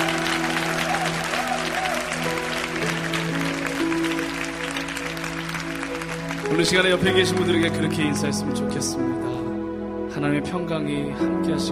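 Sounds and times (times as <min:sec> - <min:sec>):
audience applauding: 0:00.0 - 0:08.2
speech: 0:06.6 - 0:09.4, 0:10.2 - 0:11.7.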